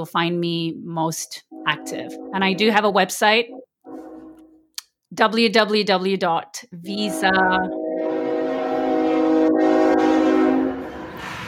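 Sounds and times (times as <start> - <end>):
speech: 0.0 - 3.6, 5.1 - 7.8
passing train horn blast: 1.5 - 4.7, 6.9 - 11.4.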